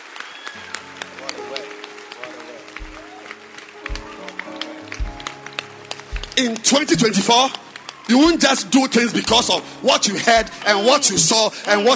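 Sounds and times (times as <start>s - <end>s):
audience clapping: 0.0s - 11.9s
low thumps: 2.8s - 3.2s, 3.8s - 4.3s, 4.9s - 7.2s
speech: 6.4s - 11.9s.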